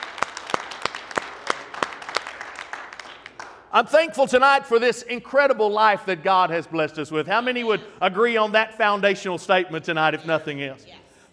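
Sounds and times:
audience clapping in unison: 0.0 - 3.9
speech: 3.7 - 11.0.

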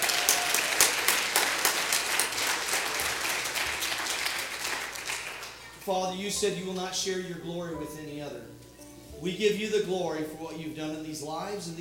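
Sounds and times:
audience clapping: 0.0 - 5.8
speech: 5.9 - 11.7.

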